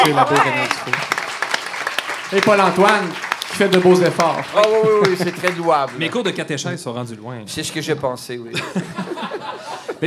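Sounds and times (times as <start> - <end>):
laughter: 0.0 - 1.1, 4.6 - 5.9, 8.5 - 10.0
audience applause: 0.0 - 6.6
speech: 0.1 - 1.2, 2.3 - 10.0.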